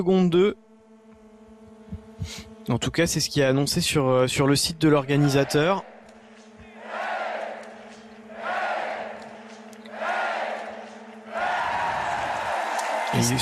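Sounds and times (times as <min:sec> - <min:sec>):
speech: 0:00.0 - 0:00.6, 0:02.2 - 0:05.9, 0:13.2 - 0:13.3
low electrical hum: 0:00.0 - 0:13.3
biathlon crowd cheering and shouting: 0:05.1 - 0:05.8, 0:06.6 - 0:13.3.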